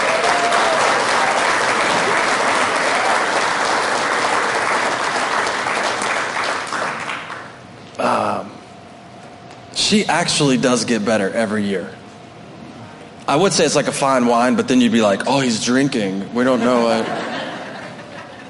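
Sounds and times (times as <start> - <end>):
audience clapping: 0.0 - 7.7
speech: 9.9 - 12.0, 13.3 - 17.3
laughter: 16.4 - 18.4.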